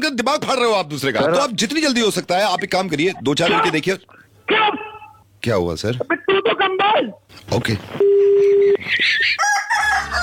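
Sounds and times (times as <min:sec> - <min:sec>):
speech: 0:00.0 - 0:04.8, 0:05.4 - 0:10.2
rooster crowing: 0:09.2 - 0:10.2.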